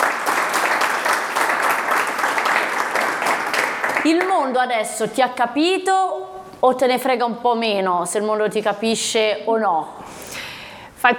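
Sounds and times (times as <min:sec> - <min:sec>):
group applauding: 0:00.0 - 0:04.6
speech: 0:04.0 - 0:10.4.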